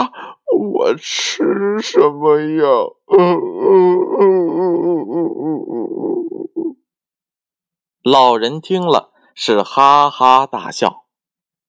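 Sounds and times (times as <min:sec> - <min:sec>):
voice acting out a child's wailing cry: 0:00.0 - 0:06.8
speech: 0:00.8 - 0:06.5, 0:08.0 - 0:11.0.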